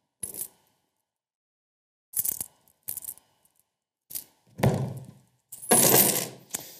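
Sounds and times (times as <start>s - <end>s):
coins rattling as they are stirred together: 0.2s - 0.6s, 2.2s - 3.4s, 5.6s - 6.7s
coins clinking as they are handled: 2.2s - 3.3s, 5.5s - 6.7s.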